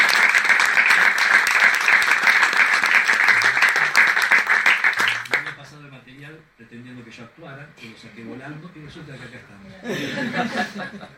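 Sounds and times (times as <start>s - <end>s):
audience applause: 0.0s - 5.6s
speech: 7.8s - 11.1s
laughter: 9.8s - 11.1s.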